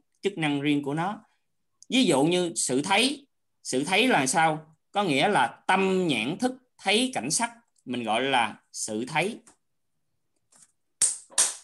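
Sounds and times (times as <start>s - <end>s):
speech: 0.2s - 1.3s, 1.9s - 9.6s
hand claps: 11.0s - 11.6s.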